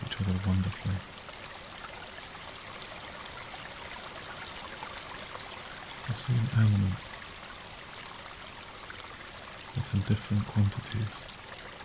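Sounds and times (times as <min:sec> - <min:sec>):
distant white water roar: 0:00.0 - 0:11.8
speech: 0:00.2 - 0:01.2, 0:06.1 - 0:07.2, 0:09.8 - 0:11.4.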